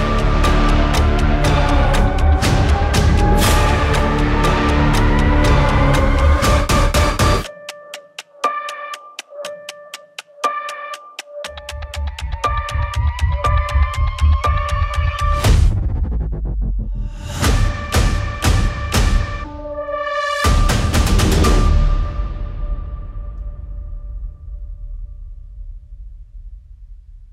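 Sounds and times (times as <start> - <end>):
horror trailer music: 0.0 - 9.6, 10.4 - 27.3.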